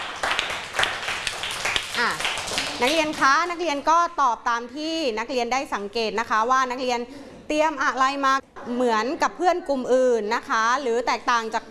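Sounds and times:
schoolchildren in a class clapping: 0.0s - 3.6s
speech: 2.0s - 11.6s.

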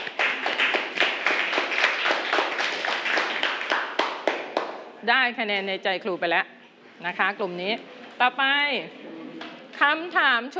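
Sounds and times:
class of children clapping: 0.0s - 4.8s
speech: 5.0s - 9.1s, 9.8s - 10.5s.

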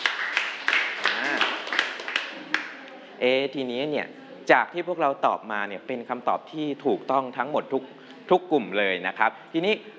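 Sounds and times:
classroom applause: 0.0s - 3.0s
speech: 3.2s - 9.9s.

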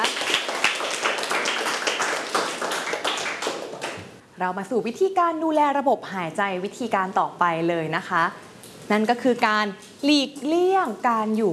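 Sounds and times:
people clapping for the demonstrator: 0.0s - 4.2s
speech: 4.4s - 11.5s.

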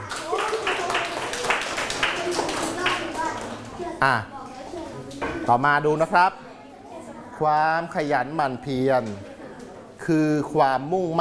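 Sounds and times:
classroom clapping: 0.0s - 3.7s
speech: 4.0s - 4.4s, 5.5s - 6.4s, 7.4s - 9.3s, 10.1s - 11.1s.

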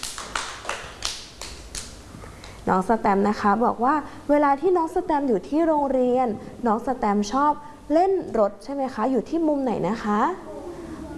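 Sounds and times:
soft hand claps praising a young child at school: 0.0s - 2.6s
speech: 2.6s - 10.5s.

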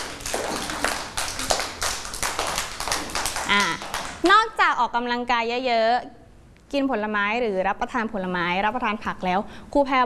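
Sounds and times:
children clapping: 0.0s - 4.2s
speech: 3.5s - 10.0s.

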